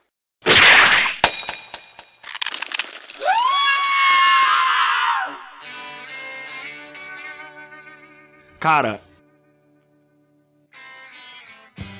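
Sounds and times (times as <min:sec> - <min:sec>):
pot of bedbugs smashing on the ground: 0:00.5 - 0:05.0
speech: 0:08.6 - 0:09.1.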